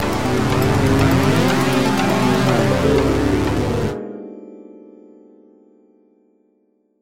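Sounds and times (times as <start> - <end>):
warp tile sound effect: 0.0 - 4.0.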